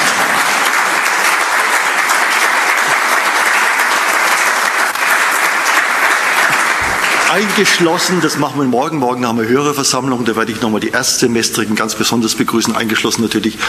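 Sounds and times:
audience applause: 0.0s - 8.8s
speech: 7.3s - 13.6s.

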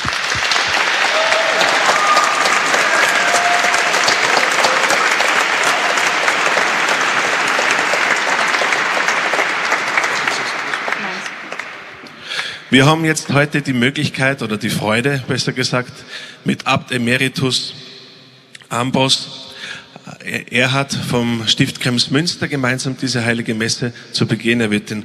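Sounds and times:
applause: 0.0s - 12.6s
speech: 12.7s - 17.8s, 18.7s - 19.4s, 20.2s - 25.0s.

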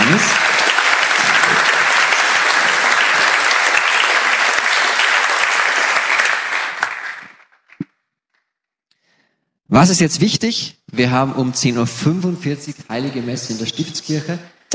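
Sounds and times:
crowd applauding: 0.0s - 7.8s
speech: 0.1s - 0.4s, 9.7s - 14.7s.

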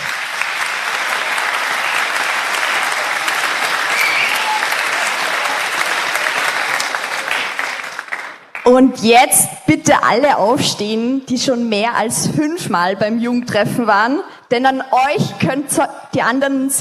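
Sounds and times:
audience applause: 0.0s - 8.7s
speech: 8.7s - 16.8s.

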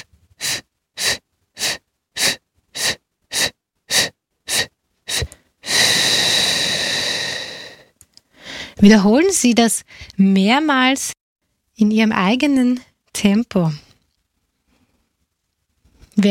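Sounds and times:
long loud noisy exhalation: 0.0s - 8.8s
short breath puffs in a diaphragm breathing exercise: 0.0s - 8.8s
speech: 8.8s - 11.2s, 11.8s - 13.8s.

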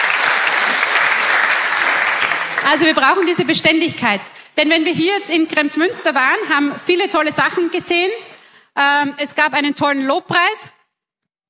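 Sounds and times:
audience applause: 0.0s - 3.5s
speech: 2.7s - 10.8s.

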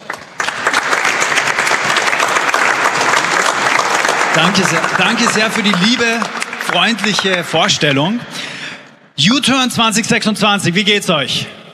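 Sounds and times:
audience applause: 0.0s - 8.2s
speech: 4.4s - 8.4s, 9.2s - 11.6s.

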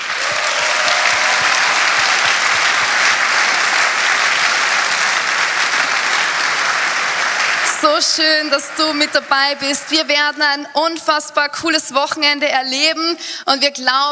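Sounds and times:
audience applause: 0.0s - 10.7s
speech: 7.9s - 14.0s.

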